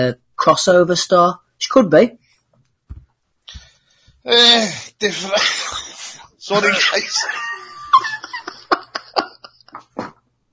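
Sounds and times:
speech: 0.0s - 2.2s, 4.2s - 5.8s, 6.5s - 7.5s
person coughing heavily: 4.5s - 7.0s
laughter: 5.0s - 10.5s.

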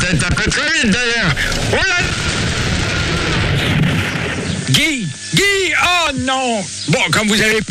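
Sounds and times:
speech: 0.1s - 2.4s, 6.2s - 7.6s
lightning strike thunder crash: 1.3s - 5.1s.

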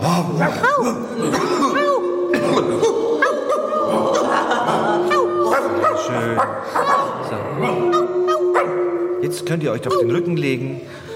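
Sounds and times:
speech: 0.1s - 1.8s, 6.1s - 7.9s, 9.3s - 11.0s
children imitating dog barking: 0.1s - 9.2s
children giggling: 0.6s - 7.0s.

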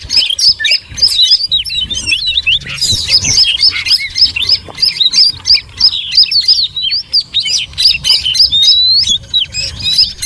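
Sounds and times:
noisy birds chirping in a dense chorus used as a lure: 0.0s - 10.2s.

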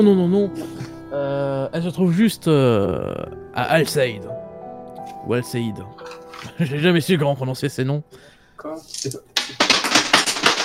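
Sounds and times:
speech: 0.0s - 4.4s, 5.2s - 9.6s
dice being dropped and clattering: 8.8s - 10.6s.

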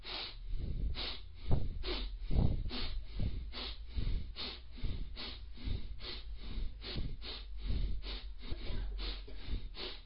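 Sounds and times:
rapid forceful breathing as a breathing exercise: 0.0s - 10.0s.

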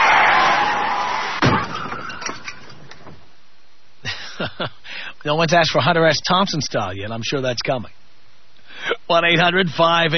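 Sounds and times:
car crash sound effect: 0.2s - 2.8s
speech: 4.6s - 8.0s, 9.1s - 10.1s.

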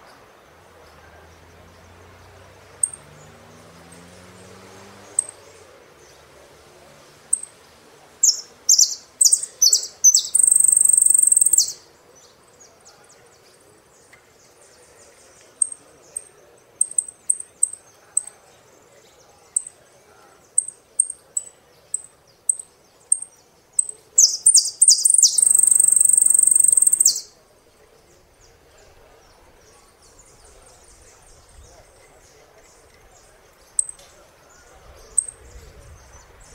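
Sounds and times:
quiet hiss: 0.0s - 36.5s
saffron finch chipping and trilling: 8.2s - 11.8s, 20.5s - 27.3s.

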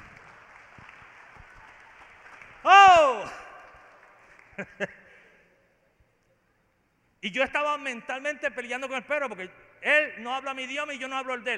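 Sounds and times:
audience applause: 0.0s - 4.8s
speech: 4.6s - 5.0s, 7.2s - 11.5s.

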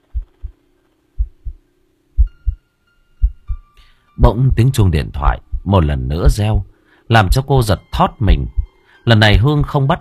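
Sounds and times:
frightened woman's pounding heartbeat: 0.0s - 0.6s, 1.2s - 1.6s, 2.2s - 2.6s, 3.2s - 3.6s, 5.3s - 6.6s, 7.3s - 7.5s, 8.3s - 8.7s
faint steady hum: 0.0s - 9.9s
speech: 4.2s - 9.9s.

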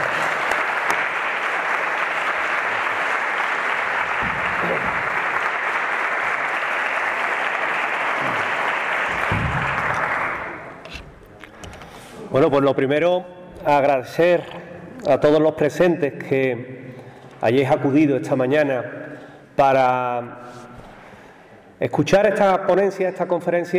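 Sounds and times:
loud audience applause: 0.0s - 10.8s
speech: 12.4s - 16.8s, 17.4s - 19.0s, 19.6s - 20.7s, 21.8s - 23.7s.

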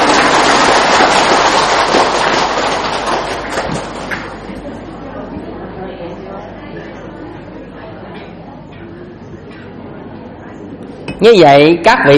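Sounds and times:
audience applause: 0.0s - 4.9s
speech: 11.2s - 12.1s.

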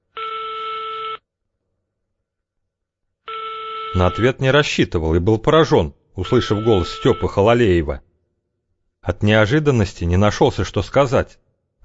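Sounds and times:
payphone number being dialed: 3.3s - 4.3s, 6.3s - 7.4s
speech: 3.9s - 8.1s, 9.0s - 11.8s.

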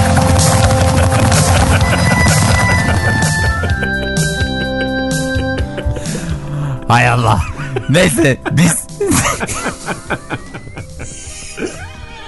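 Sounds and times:
hooves of wild horses clopping past: 0.0s - 4.5s
laughter: 0.0s - 6.5s, 7.3s - 12.2s
speech: 6.9s - 10.5s.

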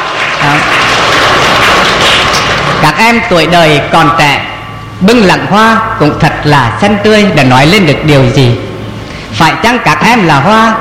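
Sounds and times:
applause at a Buddhist ceremony: 0.0s - 3.2s
speech: 0.4s - 0.8s, 2.9s - 8.6s, 9.3s - 10.7s.

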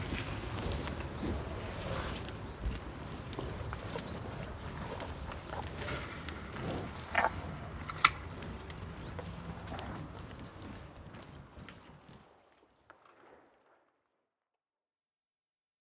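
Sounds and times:
cows mouth and breathing sounds on a meadow: 0.5s - 11.4s.

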